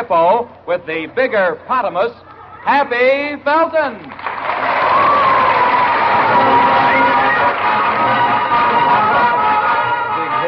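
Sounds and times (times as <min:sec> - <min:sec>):
speech: 0:00.0 - 0:04.3
quiz show studio audience cheering and applauding: 0:04.2 - 0:10.4
whoops and shouts: 0:04.7 - 0:07.6.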